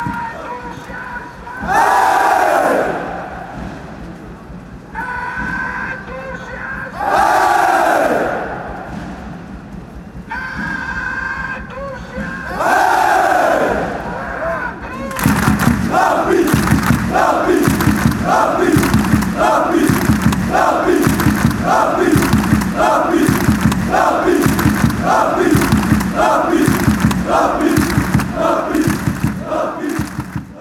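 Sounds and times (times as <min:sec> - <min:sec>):
chanting: 0:00.0 - 0:04.0, 0:05.0 - 0:09.4, 0:10.4 - 0:30.6
rapid clapping: 0:15.1 - 0:30.6.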